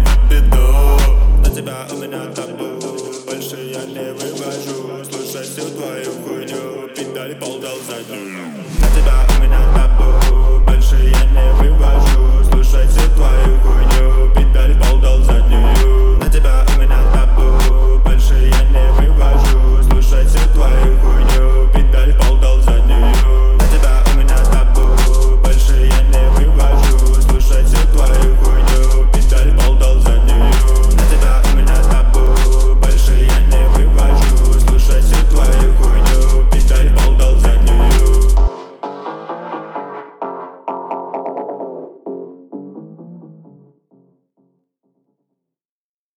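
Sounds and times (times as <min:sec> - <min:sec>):
41-46 Hz low bass tone: 0:00.0 - 0:01.6, 0:08.7 - 0:38.5.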